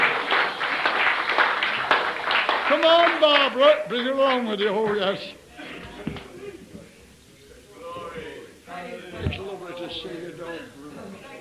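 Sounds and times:
audience clapping: 0:00.0 - 0:05.2
speech: 0:02.8 - 0:05.4.

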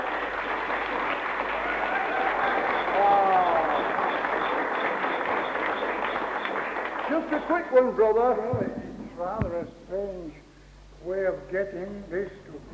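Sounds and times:
audience applause for a speaker at a Christian meeting: 0:00.0 - 0:08.3
speech: 0:07.2 - 0:10.4, 0:11.0 - 0:12.7.

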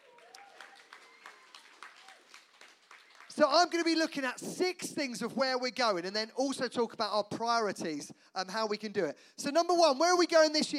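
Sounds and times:
audience applause: 0:00.0 - 0:03.9
speech: 0:03.4 - 0:10.7.

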